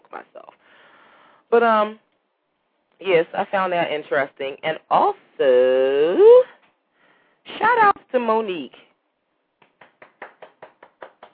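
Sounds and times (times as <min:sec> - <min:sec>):
speech: 0:00.1 - 0:00.9, 0:01.5 - 0:02.0, 0:03.0 - 0:06.5, 0:07.5 - 0:08.9
person clapping: 0:09.6 - 0:11.3.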